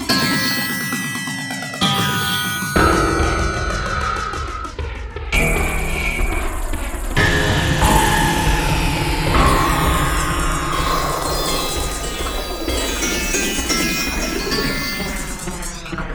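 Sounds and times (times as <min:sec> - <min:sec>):
menu sound effect: 0:00.1 - 0:04.6, 0:05.4 - 0:16.0.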